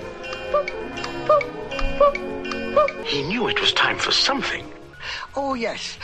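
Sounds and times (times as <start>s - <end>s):
cuckoo-style poo-coo clock from a Winnie the Pooh video ticking: 0.0s - 4.8s
speech: 3.1s - 6.0s.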